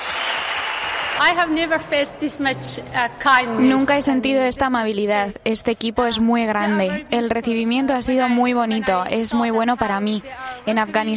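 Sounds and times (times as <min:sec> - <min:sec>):
stadium crowd applauding and cheering: 0:00.0 - 0:01.7
speech: 0:01.2 - 0:11.1.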